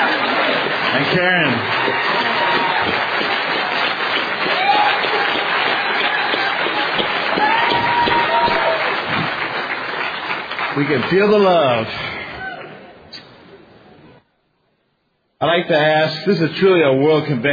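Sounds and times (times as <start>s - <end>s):
audience applauding: 0.0s - 12.8s
speech: 1.0s - 2.3s, 10.8s - 12.1s, 15.4s - 17.5s.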